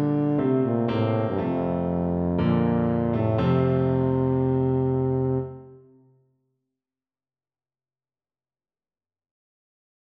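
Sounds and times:
tuba melody: 0.0 - 6.0.

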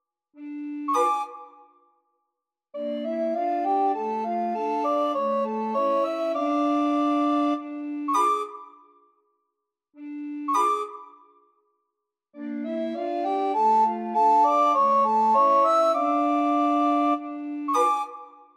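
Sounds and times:
recorder ensemble playing: 0.4 - 1.6, 2.8 - 8.6, 10.0 - 11.1, 12.4 - 18.3.

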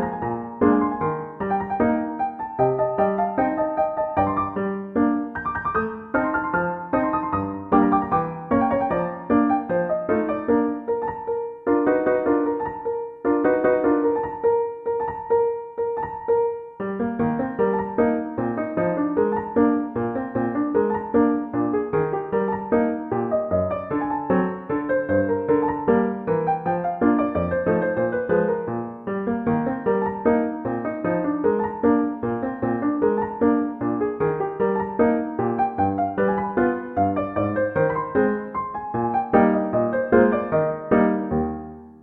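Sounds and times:
piano: 0.0 - 42.0.

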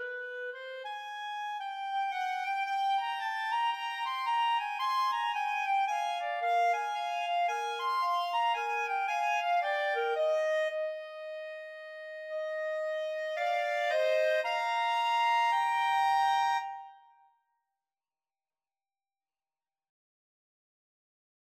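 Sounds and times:
clarinet trio: 0.0 - 17.0.

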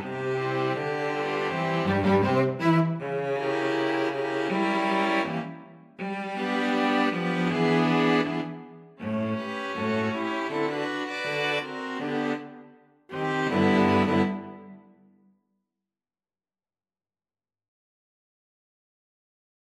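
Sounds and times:
string quartet: 0.0 - 14.8.

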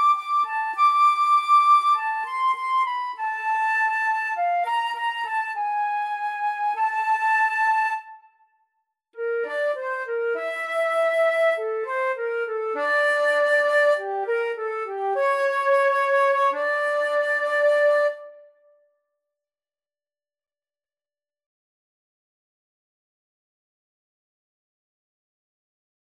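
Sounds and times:
flute duet: 0.0 - 8.5, 9.2 - 18.7.

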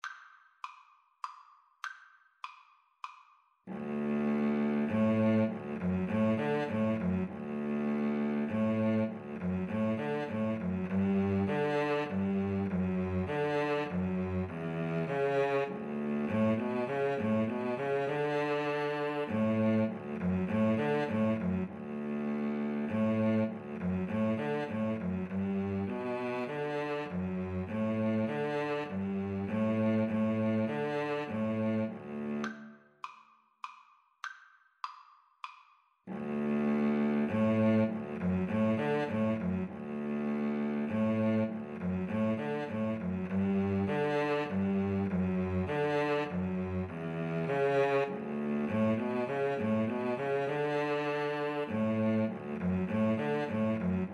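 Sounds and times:
cello duet: 3.7 - 32.7, 36.1 - 54.1.

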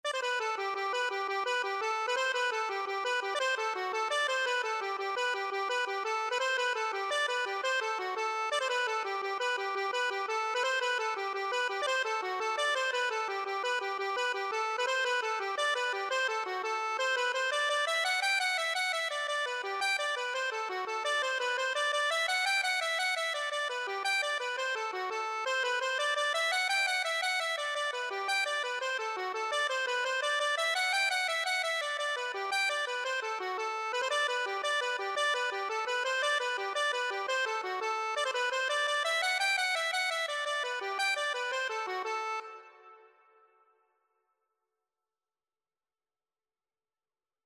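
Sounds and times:
accordion: 0.0 - 43.2.

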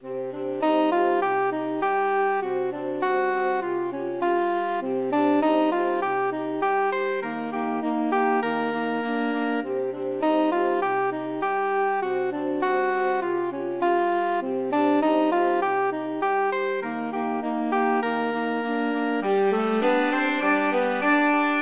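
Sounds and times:
saxophone quartet playing: 0.0 - 21.6.

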